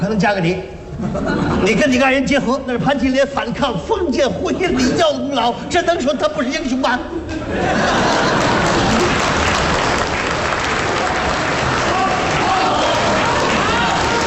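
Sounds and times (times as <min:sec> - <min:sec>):
speech: 0:00.0 - 0:08.4
laughter: 0:00.9 - 0:02.3, 0:04.4 - 0:10.0
audience applause: 0:07.6 - 0:14.2.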